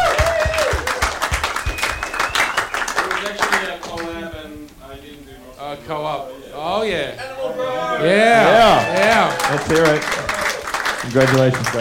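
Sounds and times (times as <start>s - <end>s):
audience applause: 0.0s - 4.2s, 8.2s - 11.7s
speech: 5.8s - 10.2s, 11.0s - 11.7s.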